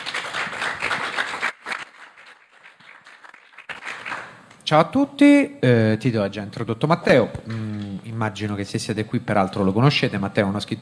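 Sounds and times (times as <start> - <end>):
audience applause: 0.0 - 4.4
speech: 4.7 - 10.7.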